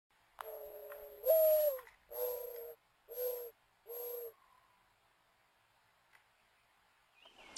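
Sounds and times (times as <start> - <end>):
brown thrasher singing: 0.4 - 4.3.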